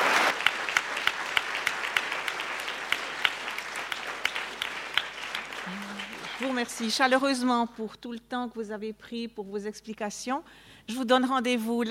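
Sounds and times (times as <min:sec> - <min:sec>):
audience applauding the speaker: 0:00.0 - 0:07.4
speech: 0:06.4 - 0:11.8.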